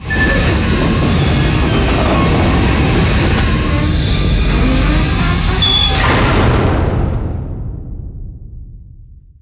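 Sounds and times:
door closing: 0.0 - 7.3.

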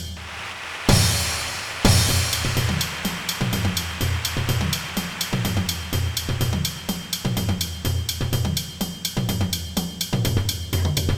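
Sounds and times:
drum cadence: 0.2 - 11.0.

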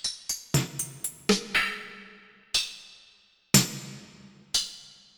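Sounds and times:
stacked snare drum hits: 0.5 - 1.8, 3.5 - 4.4.

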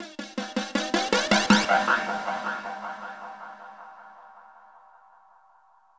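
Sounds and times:
ambient drum loop: 0.0 - 4.2.

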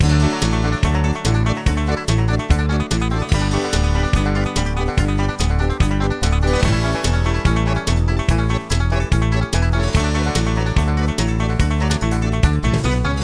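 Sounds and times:
music: 0.0 - 13.2.

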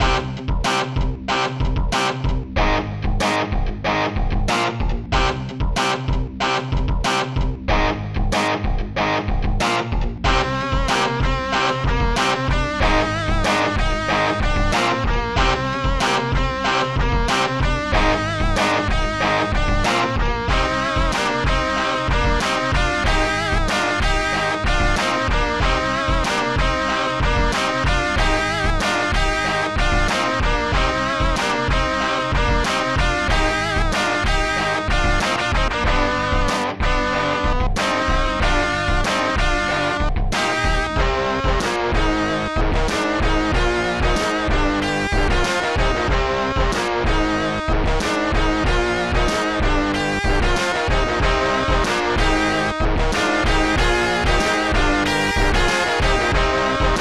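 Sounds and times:
heavy rock guitar: 0.0 - 56.9.

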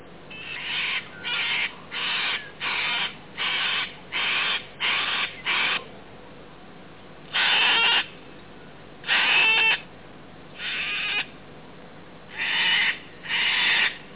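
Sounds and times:
cockatoo screeching: 0.3 - 5.9, 7.3 - 8.1, 9.0 - 9.8, 10.6 - 11.3, 12.3 - 14.0.

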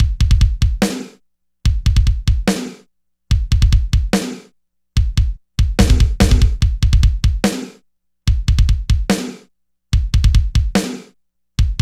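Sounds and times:
drum loop: 0.0 - 1.1, 1.7 - 2.7, 3.3 - 4.4, 5.0 - 9.4, 10.0 - 11.0, 11.6 - 11.8.

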